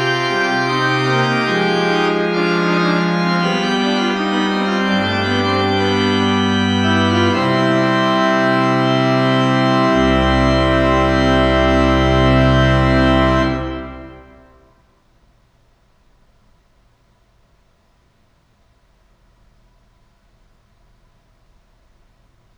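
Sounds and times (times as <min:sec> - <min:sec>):
organ fugue in C minor: 0:00.0 - 0:14.8.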